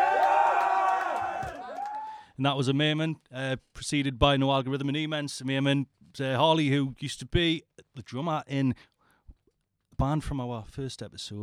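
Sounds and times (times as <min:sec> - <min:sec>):
crowd cheering and screaming: 0:00.0 - 0:02.2
speech: 0:02.4 - 0:08.9, 0:10.0 - 0:11.4.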